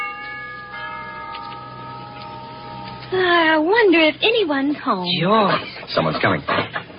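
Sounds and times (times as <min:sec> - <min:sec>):
doorbell chiming: 0:00.0 - 0:03.5
speech: 0:03.1 - 0:06.8.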